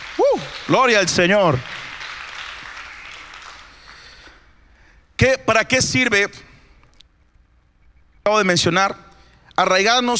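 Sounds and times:
audience applause: 0.0s - 4.2s
speech: 0.4s - 1.8s, 5.2s - 6.5s, 8.2s - 9.0s, 9.6s - 10.1s.

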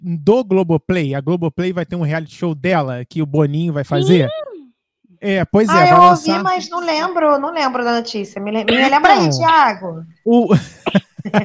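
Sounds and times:
speech: 0.0s - 4.4s, 5.2s - 11.4s
laughter: 4.0s - 4.4s, 5.7s - 6.4s, 10.3s - 11.4s
sneezing: 8.7s - 9.4s.

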